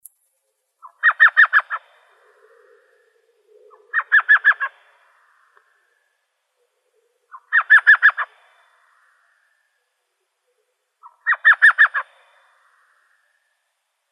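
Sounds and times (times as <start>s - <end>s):
Elf Owl chattering call in Arizona: 0.8s - 2.9s, 3.6s - 4.8s, 7.3s - 8.3s, 11.0s - 12.1s.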